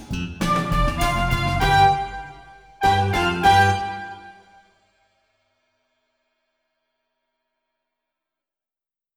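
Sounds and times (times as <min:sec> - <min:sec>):
recorder: 0:00.0 - 0:04.4.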